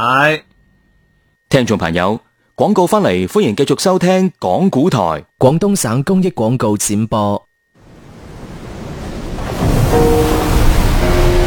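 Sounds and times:
speech: 0.0 - 0.5, 1.5 - 7.5
ocean waves surging under the Hong Kong-Zhuhai-Macau Bridge: 7.8 - 11.4.

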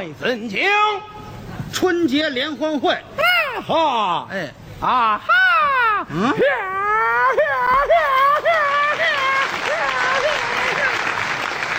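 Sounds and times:
speech: 0.0 - 5.4, 6.0 - 8.7
laughter: 4.8 - 11.2
audience applause: 8.1 - 11.7.

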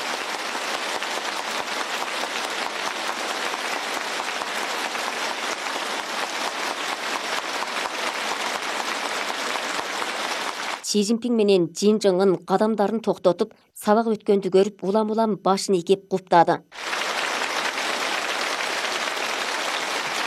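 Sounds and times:
teacher and students applauding warmly: 0.0 - 10.9, 16.8 - 20.2
speech: 10.9 - 16.9.

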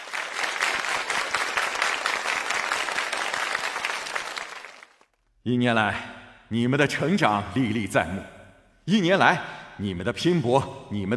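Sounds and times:
teachers applauding: 0.0 - 5.2
speech: 5.5 - 11.1.

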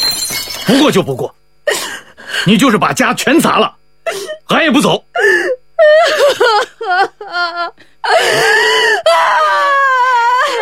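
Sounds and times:
speech: 0.7 - 1.4, 2.4 - 3.8, 4.5 - 5.1
woman crying and wailing: 4.1 - 4.4, 5.2 - 10.6.

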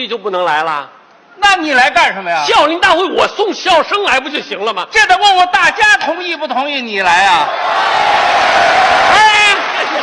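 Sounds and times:
speech: 0.0 - 10.0
audience applause and cheering: 7.5 - 10.0.

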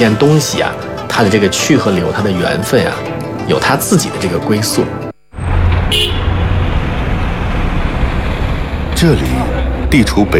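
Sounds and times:
speech: 0.0 - 5.0, 9.0 - 10.3
busy street traffic in Chongwenmen commercial district Beijing: 5.4 - 10.3
short car horn toot: 5.8 - 6.5.

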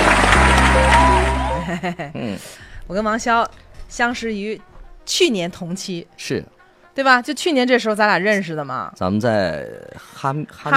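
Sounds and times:
applause in a studio welcoming a singer: 0.0 - 1.8
speech: 1.7 - 10.7.

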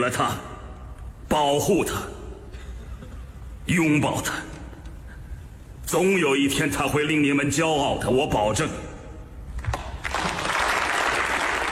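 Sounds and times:
speech: 0.0 - 0.5, 1.3 - 2.2, 3.7 - 4.5, 5.9 - 8.9
crowd applause: 9.8 - 11.7.

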